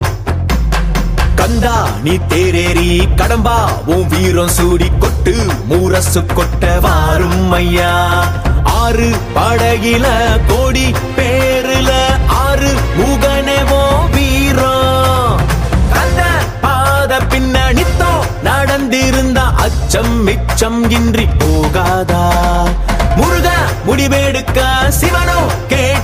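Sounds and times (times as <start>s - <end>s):
Tamil devotional song to Murugan: 1.1s - 26.0s.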